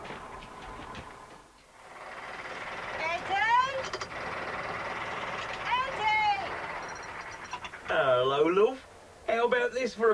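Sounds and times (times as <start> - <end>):
tractor engine approaching in yard: 0.0 - 8.8
speech: 8.0 - 8.8, 9.4 - 10.1.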